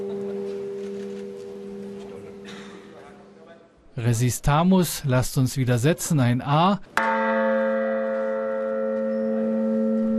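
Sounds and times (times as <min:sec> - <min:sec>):
single large church bell ringing: 0:00.0 - 0:02.7, 0:07.0 - 0:10.1
speech: 0:04.0 - 0:07.0.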